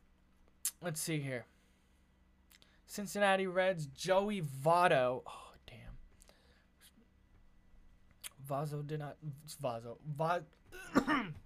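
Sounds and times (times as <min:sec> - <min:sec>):
speech: 0:00.8 - 0:01.6, 0:02.9 - 0:05.8, 0:08.5 - 0:11.4
throat clearing from a dry cottony throat: 0:10.7 - 0:11.4.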